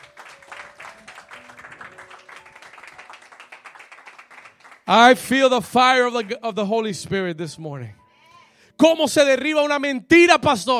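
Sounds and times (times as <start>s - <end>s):
audience applause: 0.0s - 5.2s
speech: 4.9s - 8.0s, 8.8s - 10.7s.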